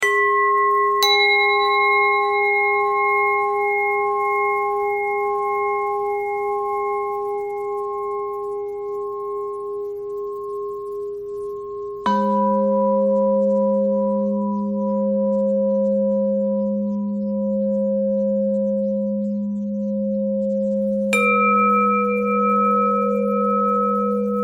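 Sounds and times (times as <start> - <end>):
pentatonic bell melody: 0.0 - 24.4.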